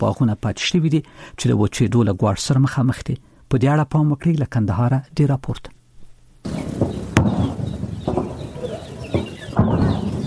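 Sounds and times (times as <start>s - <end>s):
speech: 0.0s - 5.8s
constant noise: 0.0s - 10.2s
birds calling with fowl-like clucks around farmland in Kandahar's Arghandab district: 6.4s - 10.2s
sharp loud bangs: 6.5s - 10.2s.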